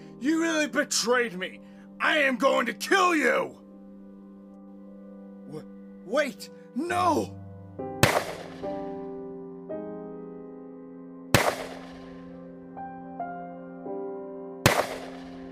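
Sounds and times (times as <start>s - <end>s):
sustained musical tones: 0.0s - 11.3s
speech: 0.2s - 3.6s, 5.5s - 7.9s
gunshots in a drama scene: 8.0s - 8.6s, 11.4s - 11.9s, 14.7s - 15.3s.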